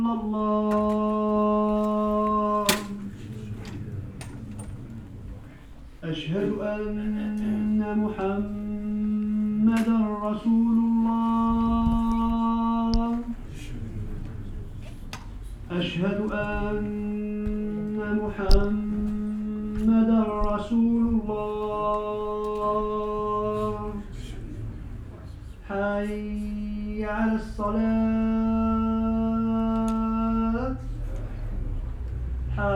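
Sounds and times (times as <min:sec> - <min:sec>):
chants at a mosque procession in Marseille: 0:00.0 - 0:32.7
imam prayers at a mosque procession in Marseille: 0:00.0 - 0:32.7
voices at a mosque procession in Marseille: 0:00.0 - 0:32.7.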